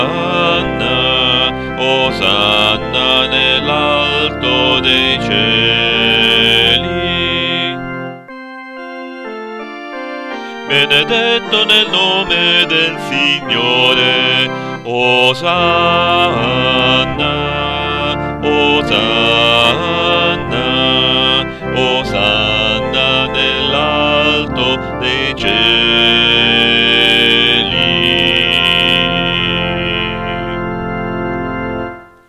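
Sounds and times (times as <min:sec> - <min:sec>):
bass choir voices: 0:00.0 - 0:08.2, 0:10.7 - 0:32.0.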